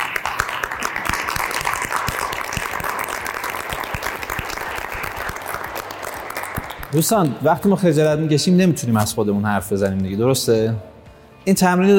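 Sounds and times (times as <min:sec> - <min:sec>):
audience applauding: 0:00.0 - 0:07.8
speech: 0:06.9 - 0:11.9.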